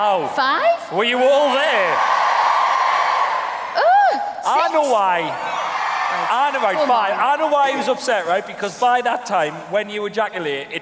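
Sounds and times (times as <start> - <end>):
speech: 0.0 - 2.2, 4.5 - 5.5, 6.1 - 10.8
audience cheering: 1.0 - 8.4.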